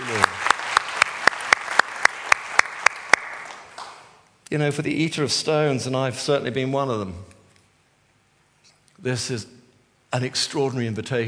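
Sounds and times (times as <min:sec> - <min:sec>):
audience clapping: 0:00.0 - 0:04.2
speech: 0:04.5 - 0:07.3, 0:09.0 - 0:11.2.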